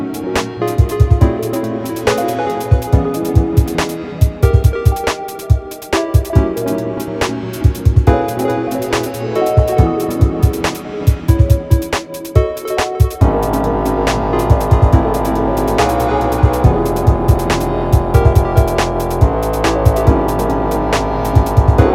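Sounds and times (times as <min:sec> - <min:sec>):
hard dubstep bass drum: 0:00.7 - 0:06.8, 0:07.6 - 0:21.9.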